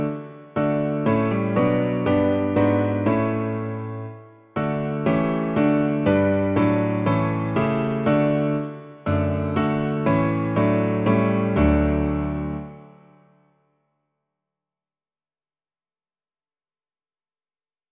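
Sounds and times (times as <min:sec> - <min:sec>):
piano: 0:00.0 - 0:13.8.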